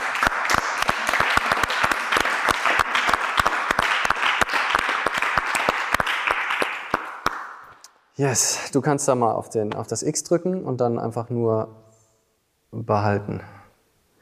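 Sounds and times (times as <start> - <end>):
audience applause: 0.0 - 7.5
speech: 8.2 - 11.8, 12.8 - 13.5.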